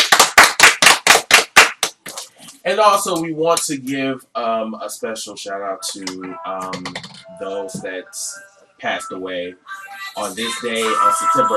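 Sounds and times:
round of sharp loud hand claps: 0:00.0 - 0:02.4
speech: 0:02.6 - 0:11.5.

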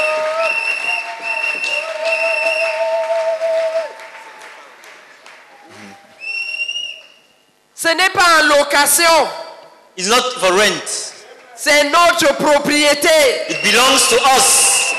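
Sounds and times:
audience clapping: 0:00.0 - 0:07.2, 0:10.7 - 0:12.4, 0:14.3 - 0:14.9
speech: 0:08.5 - 0:09.4, 0:10.0 - 0:11.0, 0:11.6 - 0:14.6.

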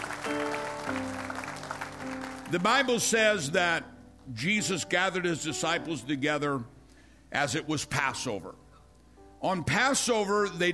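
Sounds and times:
audience hand clapping: 0:00.0 - 0:03.1
speech: 0:02.5 - 0:08.6, 0:09.4 - 0:10.7.

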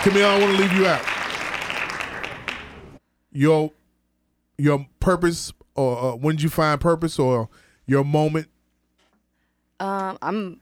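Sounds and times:
speech: 0:00.0 - 0:01.1, 0:03.4 - 0:03.8, 0:04.6 - 0:08.5, 0:09.8 - 0:10.5
hand clapping: 0:00.0 - 0:02.8.

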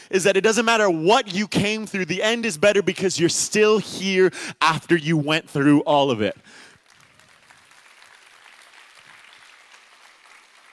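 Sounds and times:
speech: 0:00.1 - 0:06.7
subdued audience clapping: 0:06.6 - 0:10.7.

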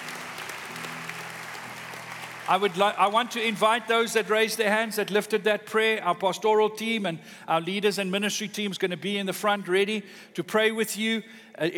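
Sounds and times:
congregation applauding during a church service after a prayer: 0:00.0 - 0:05.9
speech: 0:02.5 - 0:11.7.

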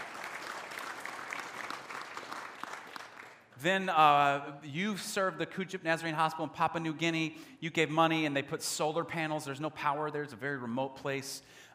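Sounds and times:
audience applause: 0:00.0 - 0:03.4
speech: 0:03.6 - 0:11.7.

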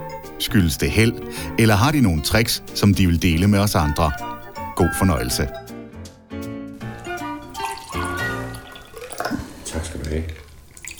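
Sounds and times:
speech: 0:00.4 - 0:05.6
drink being poured: 0:07.3 - 0:10.9.

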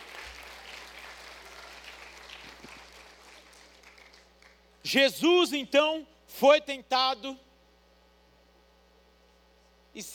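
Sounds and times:
audience applauding: 0:00.0 - 0:04.6
speech: 0:04.9 - 0:07.5, 0:10.0 - 0:10.1.

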